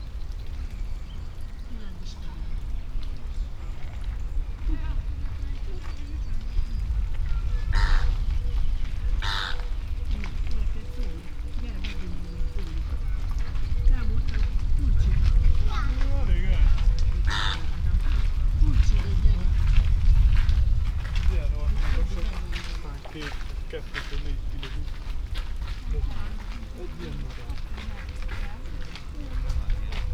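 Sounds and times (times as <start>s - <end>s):
wind: 0.0s - 30.1s
American flamingo and Chilean flamingo calling in a zoo: 7.4s - 10.8s, 17.1s - 18.3s.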